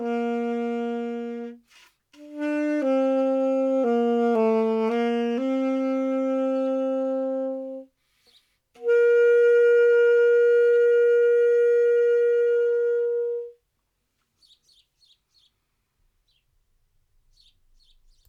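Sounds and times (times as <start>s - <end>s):
saxophone: 0.0s - 8.0s, 8.8s - 13.6s.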